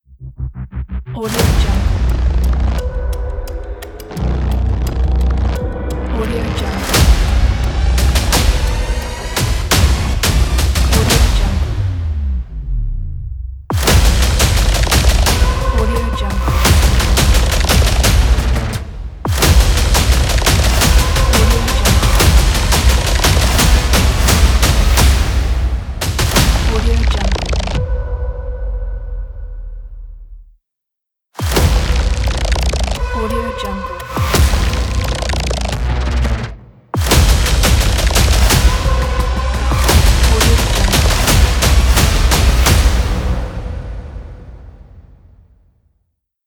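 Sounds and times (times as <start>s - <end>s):
action trailer intro ident music: 0.0s - 30.4s, 31.4s - 45.7s.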